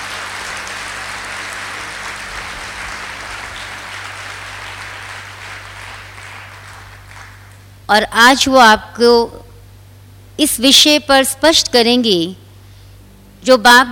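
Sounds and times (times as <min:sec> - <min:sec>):
audience applause welcoming an elderly woman guest of honour: 0:00.0 - 0:07.7
speech: 0:07.9 - 0:09.4, 0:10.4 - 0:12.4, 0:13.4 - 0:13.9.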